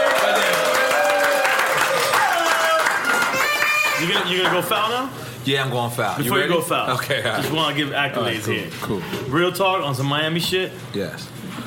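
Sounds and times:
crowd applause: 0.0 - 4.7
speech: 4.0 - 11.4.

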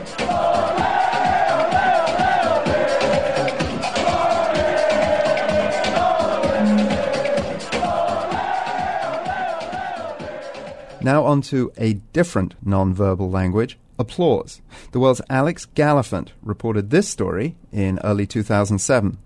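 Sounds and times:
soccer fans chanting ole: 0.0 - 11.0
speech: 11.1 - 19.2.

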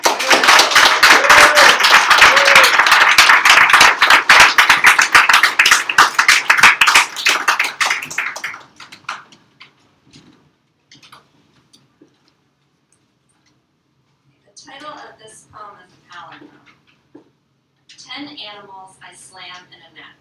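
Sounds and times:
audience applauding a poet at a poetry reading: 0.0 - 9.3.

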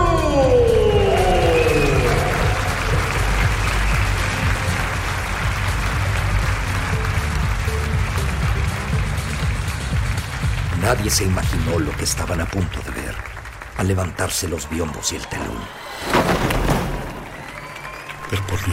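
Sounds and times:
cheers and whoops: 0.1 - 4.6, 14.5 - 16.1, 17.1 - 18.7
loud audience applause: 0.8 - 18.7
speech: 11.1 - 13.0, 13.8 - 16.2, 18.4 - 18.7.

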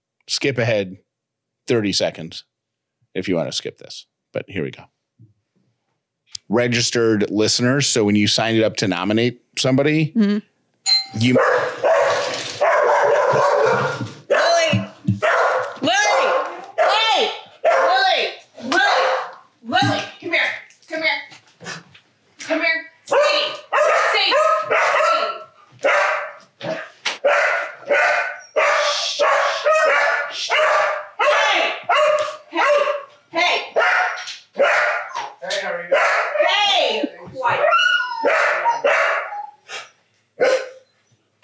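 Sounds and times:
speech: 0.3 - 1.1, 1.7 - 2.5, 3.1 - 5.0, 6.5 - 10.5, 11.1 - 11.8
dogs barking excitedly to welcome a man from Mellow Mushroom: 11.2 - 20.2, 23.1 - 40.9
dogs yipping and whimpering: 27.9 - 30.8, 33.8 - 35.4, 36.0 - 41.2.

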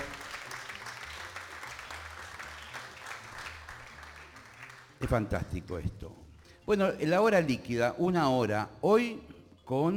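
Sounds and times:
audience applause in auditorium: 0.0 - 5.0
speech: 5.0 - 9.9.

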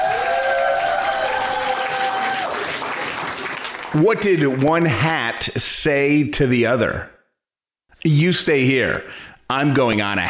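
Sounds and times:
comedy club audience applause and cheering at Ellie's Comedy Club: 0.0 - 5.4
speech: 3.9 - 7.2, 8.0 - 10.2.

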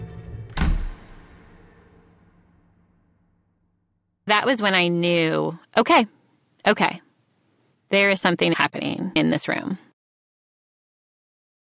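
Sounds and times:
door being shut: 0.2 - 2.7
speech: 4.3 - 7.0, 7.9 - 9.8.

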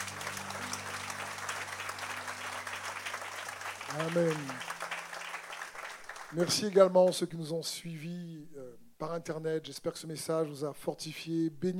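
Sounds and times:
church congregation applauding: 0.0 - 7.2
speech: 3.9 - 4.8, 6.3 - 11.7.

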